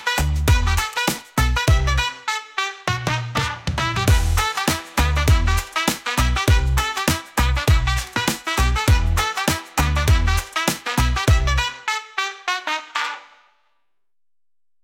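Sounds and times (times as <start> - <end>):
funky rap: 0.0 - 2.2, 3.0 - 11.8.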